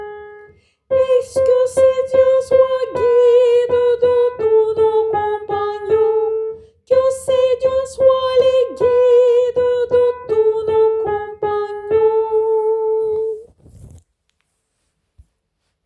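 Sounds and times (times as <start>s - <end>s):
soprano voices: 1.0s - 13.5s.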